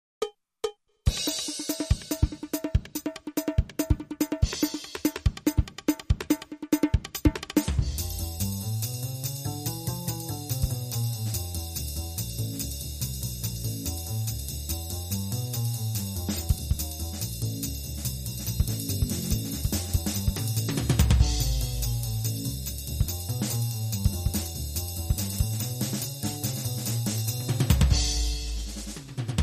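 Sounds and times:
jazz drum kit loop: 1.1 - 29.4.

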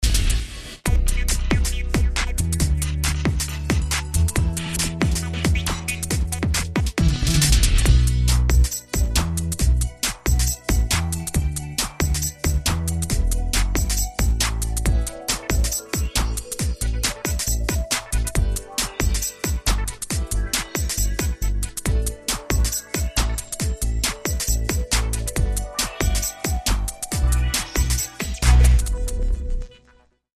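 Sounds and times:
smooth groove music: 0.8 - 29.7.

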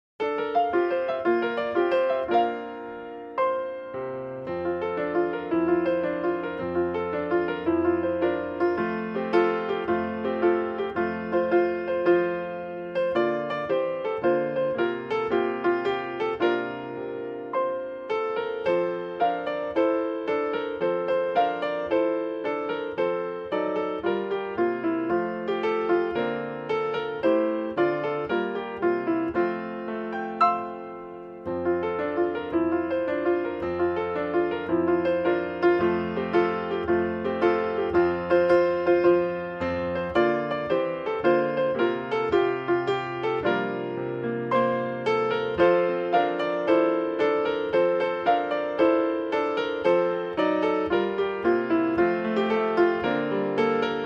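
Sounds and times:
solo piano carol: 0.2 - 54.0.

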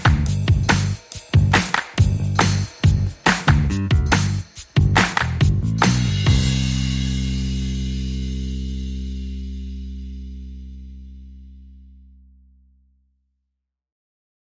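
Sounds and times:
drums: 0.0 - 9.4
bass: 0.0 - 13.7.

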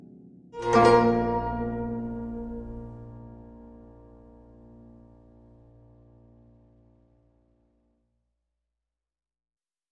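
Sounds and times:
ambient music: 0.0 - 6.8.

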